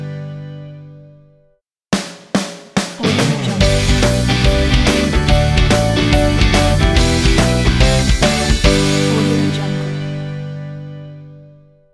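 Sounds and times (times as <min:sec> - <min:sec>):
fun energetic positive rock ident: 0:03.0 - 0:10.3.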